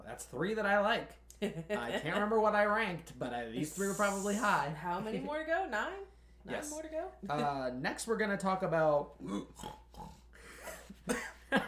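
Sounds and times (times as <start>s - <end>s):
speech: 0.1s - 10.2s, 11.1s - 11.6s
person snorting: 9.2s - 11.0s.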